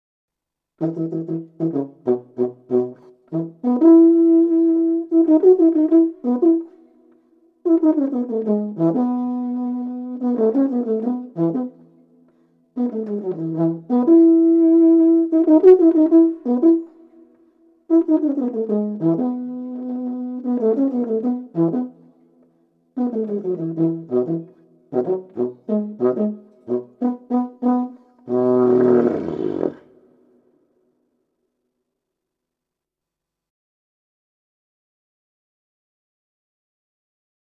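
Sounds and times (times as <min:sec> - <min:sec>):
tuba: 0:00.8 - 0:30.4.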